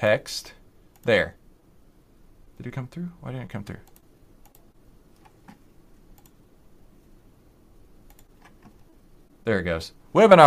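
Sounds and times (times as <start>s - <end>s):
speech: 0.0s - 1.4s, 2.6s - 3.9s, 9.5s - 10.4s
computer keyboard and mouse clicks: 3.8s - 6.4s, 8.0s - 8.9s.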